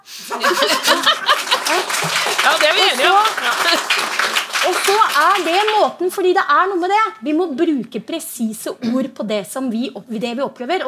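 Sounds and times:
laughter: 0:00.3 - 0:02.2
crowd applause: 0:00.3 - 0:05.9
speech: 0:05.2 - 0:10.8.

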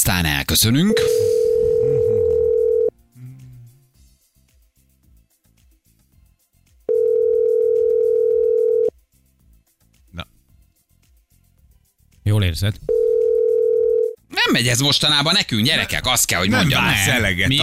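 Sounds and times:
speech: 0:00.0 - 0:02.0, 0:12.6 - 0:13.0, 0:14.5 - 0:17.6
telephone dial tone placing a call: 0:00.9 - 0:02.9, 0:06.9 - 0:08.9, 0:12.9 - 0:14.2.

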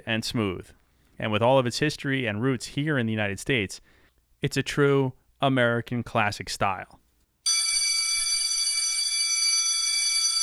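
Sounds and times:
speech: 0:00.0 - 0:07.0
bell signaling end of segment: 0:07.5 - 0:10.4.

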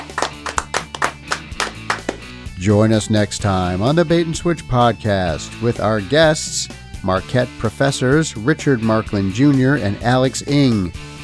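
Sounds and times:
people clapping hands: 0:00.0 - 0:02.4
speech: 0:02.6 - 0:11.1.

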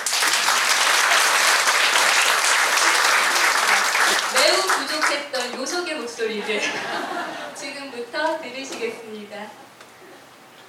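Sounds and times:
audience applause: 0:00.0 - 0:05.2
speech: 0:05.6 - 0:09.7
laughter: 0:06.4 - 0:07.6.

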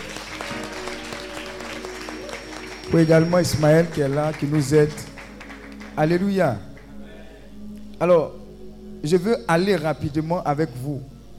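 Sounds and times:
applause for a choir during a church service: 0:00.0 - 0:06.2
speech: 0:02.9 - 0:05.1, 0:06.0 - 0:06.7, 0:08.0 - 0:08.4, 0:09.0 - 0:11.1.

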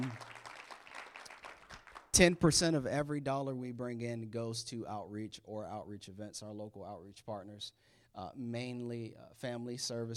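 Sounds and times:
audience applause: 0:00.0 - 0:02.1
speech: 0:02.2 - 0:10.1.

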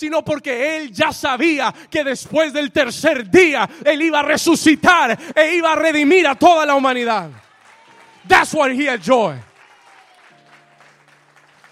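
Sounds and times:
speech: 0:00.0 - 0:07.4, 0:08.2 - 0:09.5
audience applause: 0:07.2 - 0:11.6.

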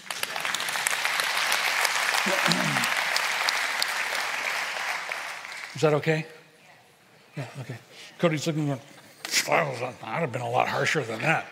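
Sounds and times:
audience applause: 0:00.0 - 0:06.0
speech: 0:02.2 - 0:03.0, 0:05.8 - 0:06.4, 0:07.4 - 0:11.4.

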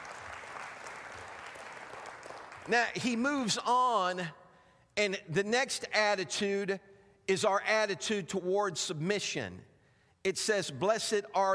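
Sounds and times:
audience clapping hands in praise: 0:00.0 - 0:03.2
speech: 0:02.6 - 0:04.4, 0:05.0 - 0:11.5.

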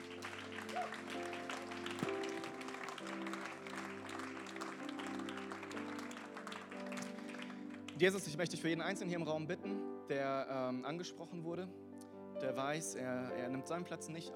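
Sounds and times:
audience clapping: 0:00.0 - 0:08.5
sustained keyboard chords: 0:00.0 - 0:14.3
speech: 0:08.0 - 0:11.8, 0:12.4 - 0:14.3.

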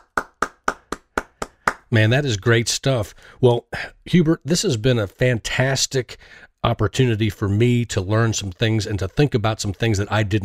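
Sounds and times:
hand clapping: 0:00.0 - 0:02.0
speech: 0:01.9 - 0:10.4.

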